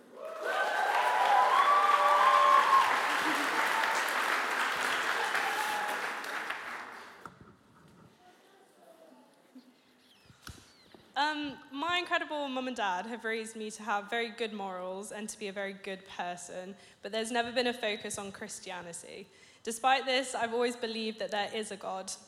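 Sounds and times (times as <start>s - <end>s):
church service applause as people return to their seats: 0.0s - 7.2s
speech: 12.2s - 22.2s.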